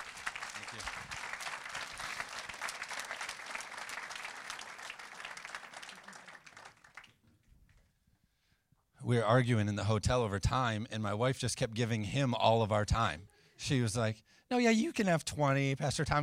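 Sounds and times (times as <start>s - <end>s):
audience applause: 0.0s - 7.2s
speech: 9.1s - 16.2s.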